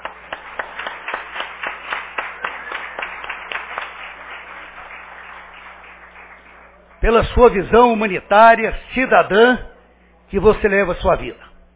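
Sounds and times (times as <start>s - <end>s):
audience applause: 0.0s - 7.3s
speech: 7.1s - 9.7s, 10.3s - 11.5s.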